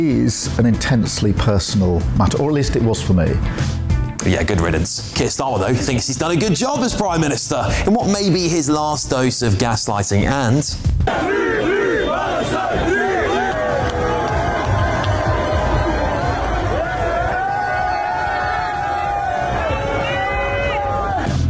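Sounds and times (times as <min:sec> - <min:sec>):
speech: 0:00.0 - 0:13.0
crowd of football fans screaming and shouting: 0:11.1 - 0:21.4.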